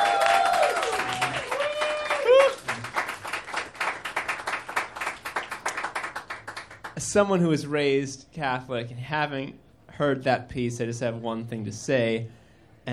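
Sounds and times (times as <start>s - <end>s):
high whooping cheers: 0.0s - 2.8s
audience clapping: 0.0s - 7.0s
speech: 7.1s - 12.9s.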